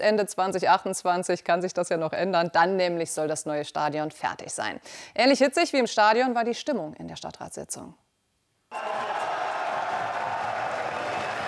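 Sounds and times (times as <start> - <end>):
speech: 0.0 - 8.1
fans cheering at city council meeting: 8.7 - 11.4.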